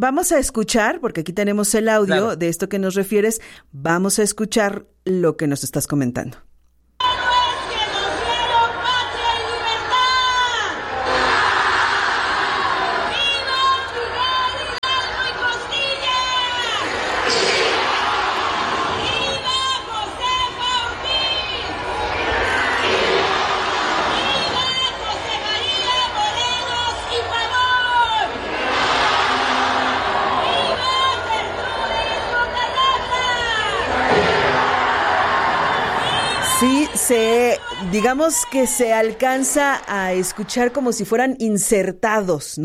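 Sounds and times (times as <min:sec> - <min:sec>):
speech: 0:00.0 - 0:06.5, 0:38.2 - 0:42.6
crowd shouting viva through loudspeakers: 0:07.0 - 0:41.1.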